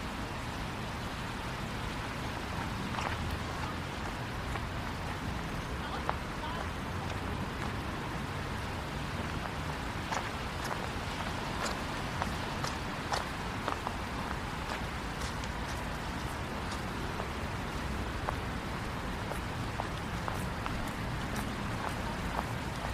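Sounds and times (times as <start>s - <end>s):
light rain pattering on a rainy downtown walk: 0.0s - 22.9s
passing cars rumble: 0.8s - 22.9s
sharp drips and ticks: 1.0s - 22.9s.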